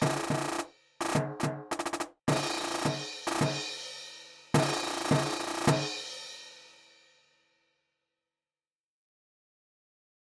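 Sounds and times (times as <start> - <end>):
Spielmannszug marching band percussion: 0.0 - 3.9, 4.5 - 6.1.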